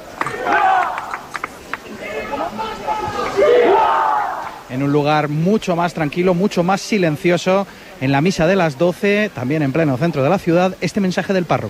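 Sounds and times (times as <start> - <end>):
crowd shouting and cheering at a street rally: 0.0 - 5.0
speech: 4.8 - 11.6.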